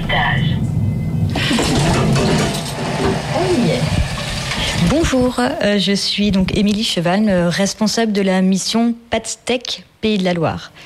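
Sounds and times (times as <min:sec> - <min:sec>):
elevator mechanism running: 0:00.6 - 0:05.2
speech: 0:04.9 - 0:10.8.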